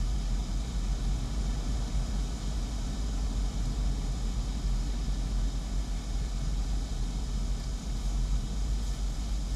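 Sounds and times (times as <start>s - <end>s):
outdoor ambience: 0.0s - 9.5s.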